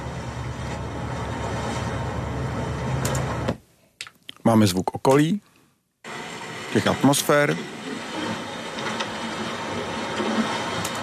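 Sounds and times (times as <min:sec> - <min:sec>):
ship engine drone sound effect: 0:00.0 - 0:03.6, 0:06.1 - 0:11.0
speech: 0:04.5 - 0:05.5, 0:06.8 - 0:07.8.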